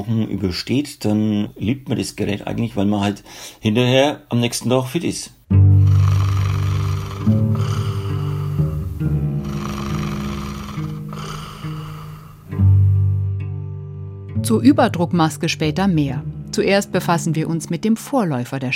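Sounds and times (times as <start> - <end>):
speech: 0.0 - 5.4, 14.5 - 18.7
loud sawing rattling snoring: 5.8 - 12.5.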